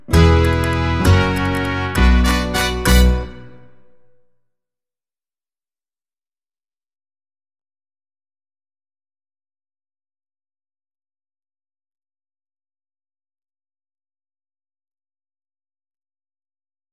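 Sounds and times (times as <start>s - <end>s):
fandango backing track: 0.0s - 4.1s.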